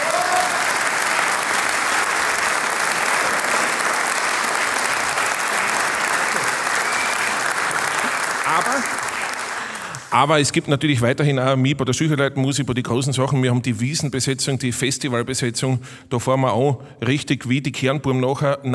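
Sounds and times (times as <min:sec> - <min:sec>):
audience applause from a sizable crowd: 0:00.0 - 0:10.3
speech: 0:10.1 - 0:18.7.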